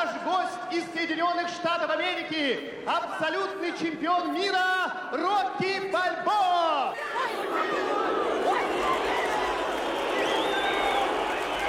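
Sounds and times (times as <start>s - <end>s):
speech: 0.2s - 8.3s
hostile boxing arena crowd reaction: 6.9s - 11.6s.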